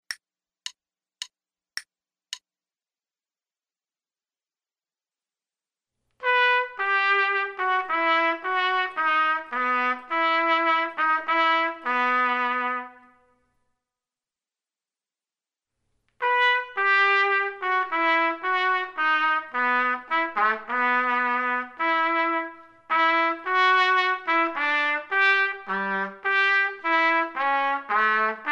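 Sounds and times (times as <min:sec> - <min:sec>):
trumpet: 0:06.2 - 0:13.4, 0:16.2 - 0:28.4.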